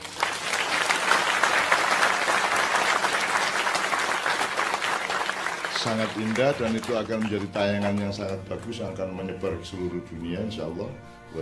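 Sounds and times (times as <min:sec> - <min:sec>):
audience applause: 0:00.0 - 0:08.8
speech: 0:05.8 - 0:11.4.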